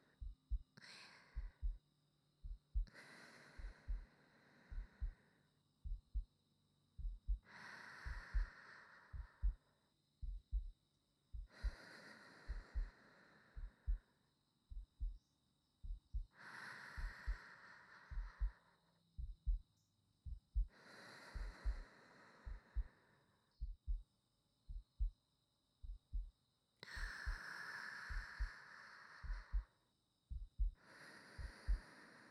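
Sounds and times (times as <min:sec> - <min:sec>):
new wife's heartbeat: 0:00.0 - 0:00.8, 0:01.4 - 0:01.8, 0:02.4 - 0:03.0, 0:03.6 - 0:04.1, 0:04.7 - 0:05.2, 0:05.8 - 0:06.3, 0:07.0 - 0:09.6, 0:10.2 - 0:11.9, 0:12.5 - 0:13.0, 0:13.6 - 0:14.1, 0:14.7 - 0:15.2, 0:15.8 - 0:16.4, 0:17.0 - 0:17.4, 0:18.1 - 0:18.6, 0:19.2 - 0:22.9, 0:23.6 - 0:24.1, 0:24.7 - 0:25.2, 0:25.8 - 0:26.4, 0:27.0 - 0:27.4, 0:28.1 - 0:28.6, 0:29.2 - 0:30.8, 0:31.4 - 0:31.9
sleeping breathing: 0:02.8 - 0:05.4, 0:07.3 - 0:09.7, 0:11.4 - 0:14.2, 0:16.2 - 0:18.9, 0:20.6 - 0:23.4, 0:26.8 - 0:29.8, 0:30.7 - 0:32.2.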